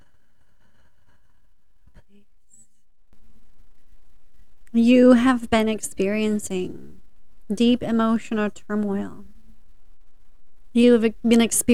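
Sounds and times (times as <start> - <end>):
deep breath drawn in before a spiritual channelling session: 0.0 - 2.2
speech: 4.8 - 6.9, 7.5 - 9.3, 10.8 - 11.7.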